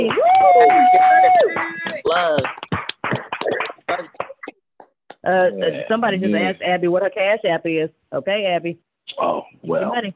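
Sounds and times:
person holding a long high whoop: 0.0s - 2.4s
crowd cheering: 0.0s - 4.4s
hand claps: 0.0s - 5.5s
speech: 5.3s - 10.1s.

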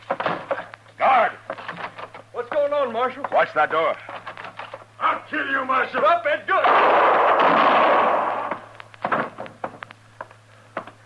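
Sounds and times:
sharp knocks and clatters: 0.0s - 0.8s, 1.5s - 4.9s, 8.5s - 11.0s
low steady hum: 0.0s - 11.0s
speech: 3.0s - 4.1s, 5.3s - 7.7s
shotgun blast: 6.6s - 8.6s.

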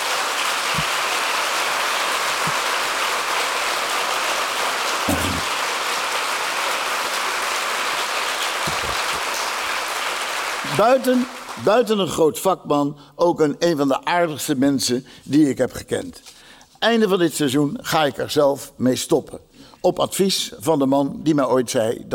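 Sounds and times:
applause in Den Haag: 0.0s - 12.2s
speech: 10.8s - 22.1s.

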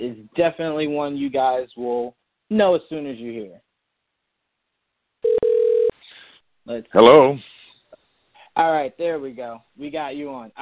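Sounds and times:
speech: 0.0s - 3.6s, 6.7s - 7.5s, 8.6s - 10.6s
faint line noise hiss: 0.0s - 10.6s
telephone ringing tone: 5.2s - 6.0s.

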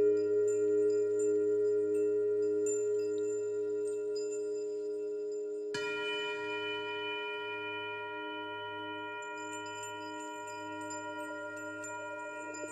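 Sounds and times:
417hz singing bowl humming: 0.0s - 12.7s
417hz singing bowl struck: 5.7s - 12.7s.

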